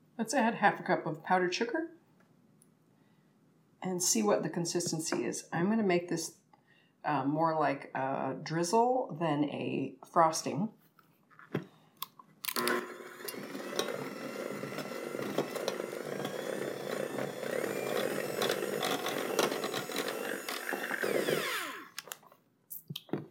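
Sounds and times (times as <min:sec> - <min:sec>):
speech: 0:00.2 - 0:02.0, 0:03.8 - 0:06.4, 0:07.0 - 0:10.8
electric hand mixer beating a powdered sugar glaze: 0:12.5 - 0:22.1.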